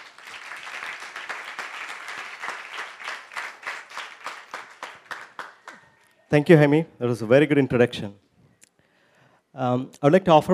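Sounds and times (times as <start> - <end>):
audience applause: 0.0 - 6.1
speech: 6.3 - 8.2, 9.6 - 10.5.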